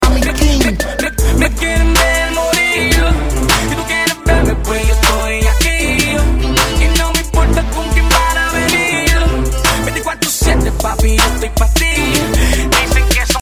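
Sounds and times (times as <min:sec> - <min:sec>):
reggaeton music: 0:00.0 - 0:13.4.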